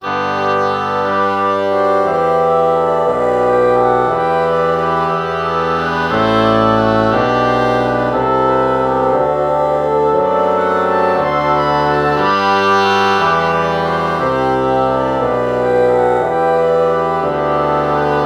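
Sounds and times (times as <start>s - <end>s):
oboe morphing into bassoon: 0.0s - 18.2s.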